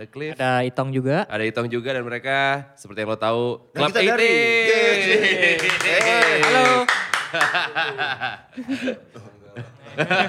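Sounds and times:
speech: 0:00.0 - 0:10.2
laughter: 0:04.3 - 0:10.2
hand clapping: 0:05.5 - 0:08.1.

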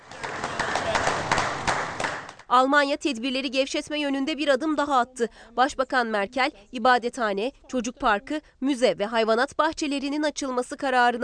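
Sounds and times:
people clapping for health workers: 0:00.0 - 0:02.5
speech: 0:02.5 - 0:11.2.

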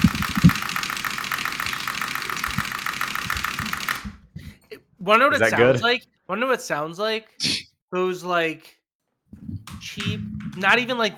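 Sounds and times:
fast typing on a keyboard held by the mic: 0:00.0 - 0:04.2, 0:09.6 - 0:10.9
speech: 0:05.0 - 0:09.4, 0:10.0 - 0:11.1.

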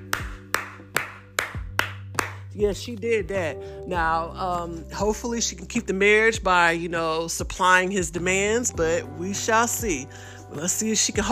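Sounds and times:
hand clapping: 0:00.0 - 0:02.5
speech: 0:02.6 - 0:11.2.

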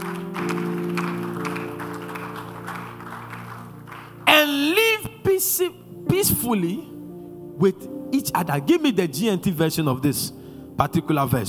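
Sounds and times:
audience clapping: 0:00.0 - 0:04.8
sustained low musical chord: 0:00.0 - 0:11.4
speech: 0:05.4 - 0:06.9, 0:07.6 - 0:11.4.

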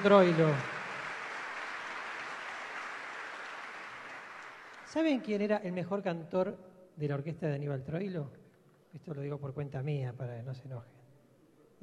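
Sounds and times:
speech: 0:00.0 - 0:00.7, 0:04.9 - 0:11.0
concert audience applause: 0:00.0 - 0:05.0.

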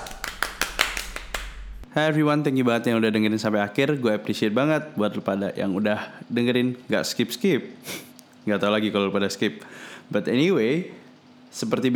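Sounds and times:
hand claps: 0:00.0 - 0:01.8
faint low hum: 0:00.0 - 0:11.9
speech: 0:02.0 - 0:11.9.

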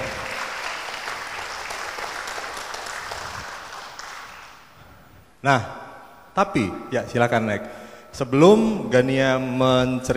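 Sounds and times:
audience applause: 0:00.0 - 0:04.7
speech: 0:05.4 - 0:05.8, 0:06.4 - 0:10.1.

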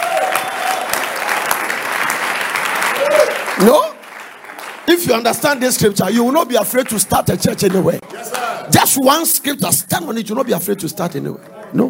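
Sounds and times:
audience clapping: 0:00.0 - 0:09.0
speech: 0:03.6 - 0:03.9, 0:04.9 - 0:11.8.

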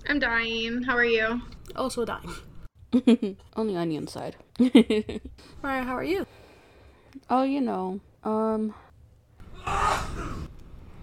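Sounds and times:
speech: 0:00.1 - 0:06.4, 0:07.1 - 0:08.8
loud man's sneeze from the kitchen: 0:09.6 - 0:10.5.

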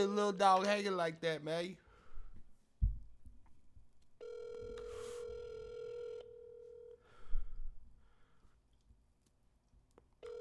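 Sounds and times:
speech: 0:00.0 - 0:01.8
phone call ringing tone: 0:04.2 - 0:07.0.

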